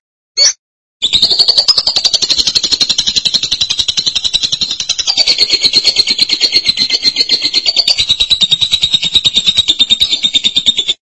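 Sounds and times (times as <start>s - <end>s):
lovebird buzzy chatter: 1.0s - 11.0s.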